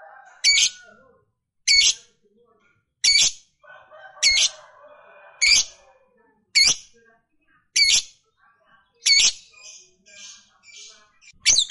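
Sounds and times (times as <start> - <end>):
fighter-type lovebird chattering in a rapid high buzzy trill: 1.7 - 2.1, 3.0 - 3.4, 6.6 - 6.9, 7.8 - 8.2, 9.0 - 11.6.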